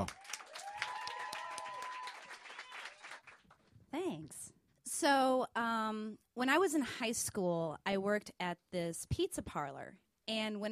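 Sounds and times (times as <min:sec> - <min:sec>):
crowd whooping and cheering: 0:00.0 - 0:03.3
audience applause: 0:00.0 - 0:03.6
speech: 0:04.1 - 0:10.7.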